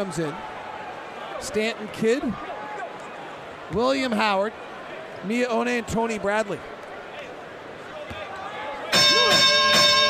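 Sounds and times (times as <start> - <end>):
speech: 0.0 - 0.5, 1.4 - 2.5, 3.7 - 6.8
arena bell clanging for a 30-point score: 8.9 - 10.0.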